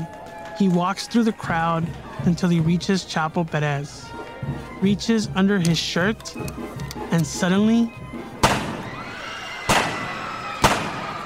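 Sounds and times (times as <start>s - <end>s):
speech: 0.6s - 8.0s
gunshots fired point blank at a party: 8.2s - 9.0s, 9.6s - 11.2s.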